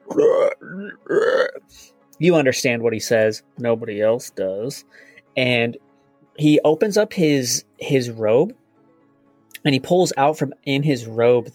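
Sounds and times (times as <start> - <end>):
voice imitating a croak: 0.0 - 1.6
speech: 0.8 - 8.6, 9.6 - 11.5.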